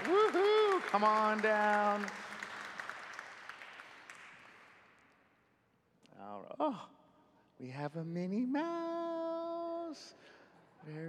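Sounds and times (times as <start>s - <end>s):
audience applause: 0.0s - 4.8s
speech: 0.9s - 2.3s, 6.4s - 7.0s, 7.6s - 9.2s, 9.9s - 11.0s.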